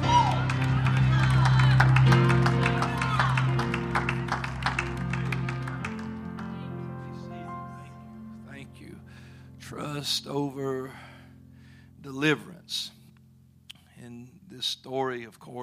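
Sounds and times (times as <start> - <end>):
audience shouting: 0.0 - 3.8
audience clapping: 0.0 - 7.3
speech: 10.0 - 11.1, 12.0 - 13.0, 14.0 - 15.6.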